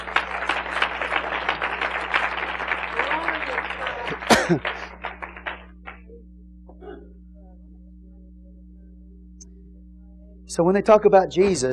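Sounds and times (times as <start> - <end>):
audience clapping in praise: 0.0 - 6.2
speech: 4.5 - 4.7, 10.6 - 11.7.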